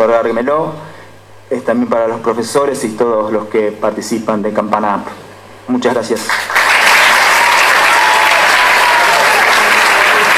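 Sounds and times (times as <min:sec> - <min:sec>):
speech: 0:00.0 - 0:00.9, 0:01.5 - 0:06.6
crowd applauding at an award ceremony: 0:06.3 - 0:10.3.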